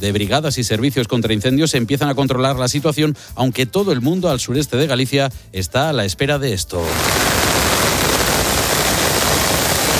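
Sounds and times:
speech: 0.0s - 7.4s
rain falling in Santiago: 6.9s - 9.9s.

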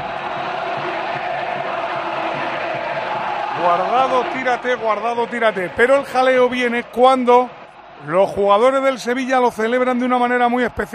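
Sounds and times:
football fans chanting at a player: 0.0s - 8.0s
speech: 3.6s - 10.9s.

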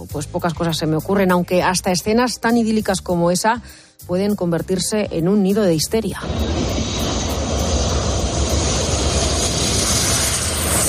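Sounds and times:
speech: 0.1s - 7.2s
airplane landing low over a beach: 6.1s - 10.8s.

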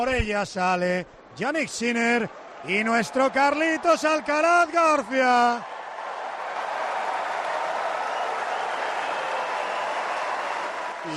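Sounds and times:
speech: 0.0s - 5.8s
large stadium crowd applause: 2.3s - 11.1s.

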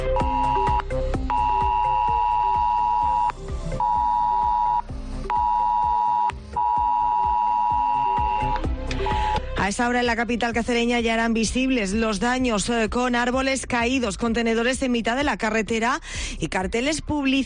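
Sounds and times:
mobile phone emergency alert tone: 0.2s - 8.5s
speech: 9.8s - 17.4s.

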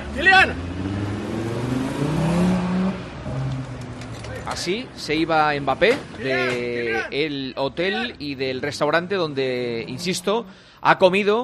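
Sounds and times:
car engine revving while driving out of a parking garage: 0.0s - 6.2s, 8.1s - 10.6s
speech: 0.2s - 0.7s, 4.5s - 11.4s.

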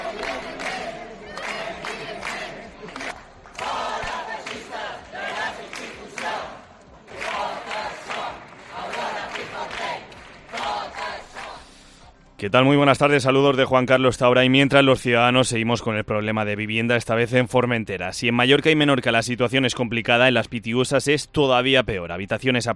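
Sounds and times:
protesters shouting in parliament: 0.0s - 11.8s
speech: 12.4s - 22.7s.

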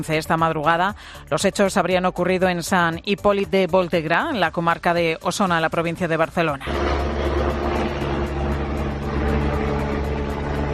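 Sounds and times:
speech: 0.0s - 7.1s
Mossos police helicopter flying overhead: 6.6s - 10.7s.

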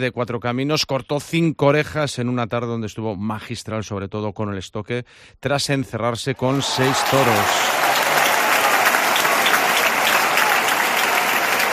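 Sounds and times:
speech: 0.0s - 7.9s
audience applause: 6.4s - 11.7s.

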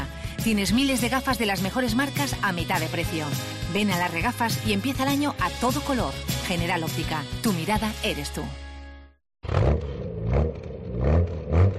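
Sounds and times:
speech: 0.4s - 8.6s
car engine revving: 9.4s - 11.7s.

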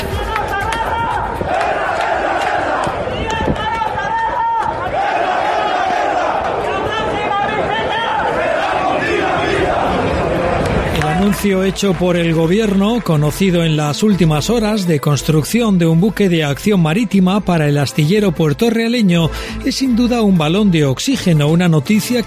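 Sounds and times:
Navantia Puerto Real shipyard workers protesting, shouting and chanting in Cádiz: 0.0s - 12.0s
speech: 11.4s - 22.2s.

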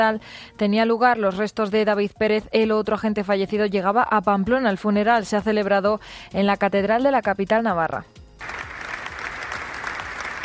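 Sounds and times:
speech: 0.0s - 8.5s
police officers applauding outside Pamplona's cathedral at a funeral: 8.4s - 10.4s.

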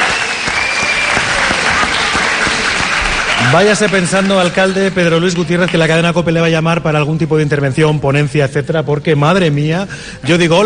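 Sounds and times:
applause: 0.0s - 6.0s
speech: 3.5s - 10.6s.

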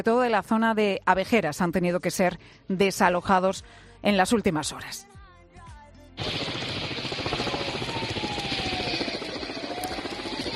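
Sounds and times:
speech: 0.0s - 5.2s, 6.2s - 6.6s
firefighting helicopter rotor chopping overhead: 6.2s - 10.5s.

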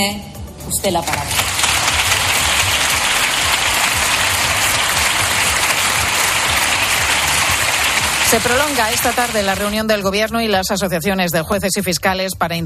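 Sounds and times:
speech: 0.0s - 1.5s, 8.3s - 12.6s
parliamentary applause from a large group: 1.1s - 9.8s.

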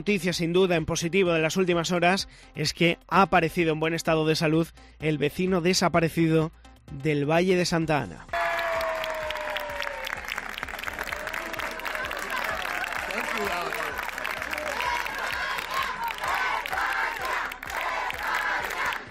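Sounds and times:
speech: 0.0s - 8.4s
applause: 8.3s - 19.0s
crowd cheering: 8.3s - 19.0s
crowd shouting a name: 11.1s - 19.0s.

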